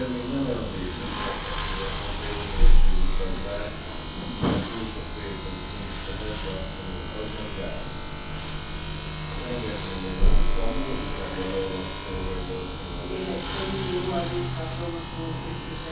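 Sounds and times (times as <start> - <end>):
hair clipper: 0.0 - 15.9.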